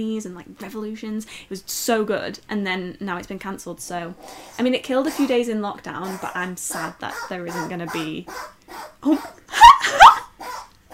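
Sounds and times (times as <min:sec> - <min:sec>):
speech: 0:00.0 - 0:10.1
pet sneezing: 0:05.0 - 0:09.4.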